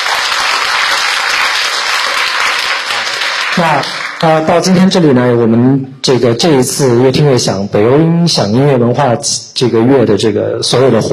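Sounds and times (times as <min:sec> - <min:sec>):
warm audience applause: 0:00.0 - 0:04.4
speech: 0:03.6 - 0:11.1.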